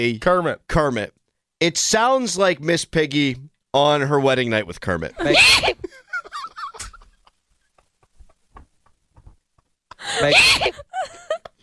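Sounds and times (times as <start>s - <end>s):
speech: 0.0s - 5.7s, 10.1s - 11.2s
brief yelps: 5.2s - 5.8s
loud theatrical sneeze: 10.2s - 10.8s.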